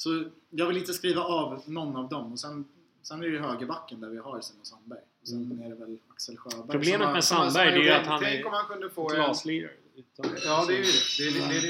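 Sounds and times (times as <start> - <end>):
speech: 0.0 - 11.6
glasses clinking: 10.2 - 11.6.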